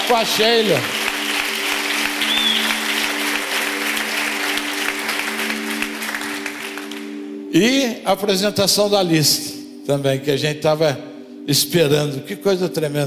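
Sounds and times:
applause: 0.0 - 7.3
speech: 0.1 - 1.0, 7.5 - 13.0.

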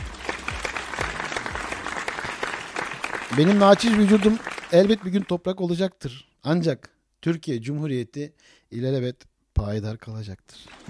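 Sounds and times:
crowd applause: 0.0 - 5.4, 10.7 - 10.8
speech: 3.4 - 10.8.

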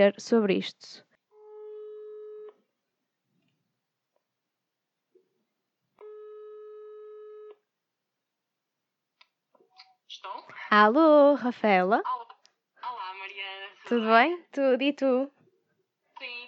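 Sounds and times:
speech: 0.0 - 1.0, 10.2 - 12.2, 13.3 - 15.4, 16.2 - 16.4
telephone ringback tone while placing a call: 1.4 - 2.6, 6.0 - 7.6.

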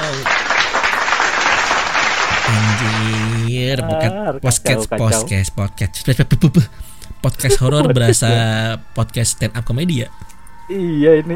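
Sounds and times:
audience clapping: 0.0 - 3.5
laughter: 2.3 - 3.5, 7.4 - 8.7
speech: 2.5 - 11.3.

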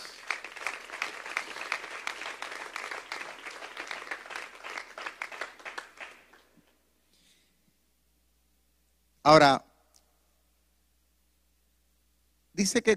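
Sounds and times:
audience applause: 0.0 - 6.5
speech: 9.3 - 9.6, 12.6 - 12.9.

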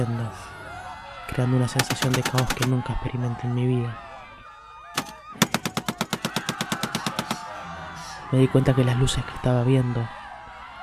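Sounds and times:
speech: 0.0 - 0.5, 1.3 - 4.1, 8.3 - 10.2
gunshots and gunfire all around: 1.7 - 2.7, 5.0 - 7.5.

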